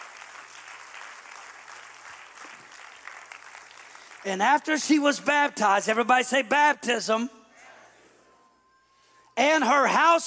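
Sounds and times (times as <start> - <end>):
audience applause for a helper: 0.0 - 4.3
speech: 4.2 - 7.4, 9.4 - 10.2.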